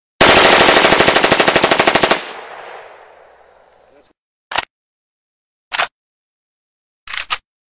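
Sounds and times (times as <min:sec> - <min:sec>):
UMP 45 submachine gun firing: 0:00.2 - 0:03.7.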